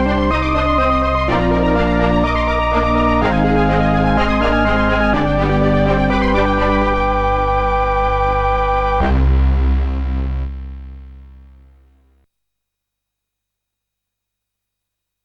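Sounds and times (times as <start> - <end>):
strings: 0.0 - 10.3.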